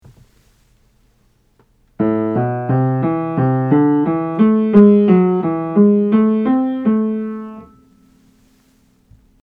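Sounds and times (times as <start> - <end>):
minor scales played: 2.0 - 8.8.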